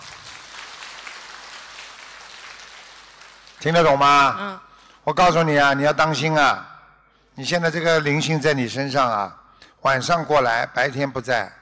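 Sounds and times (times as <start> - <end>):
applause: 0.0 - 4.0
speech: 3.6 - 6.7, 7.4 - 11.5.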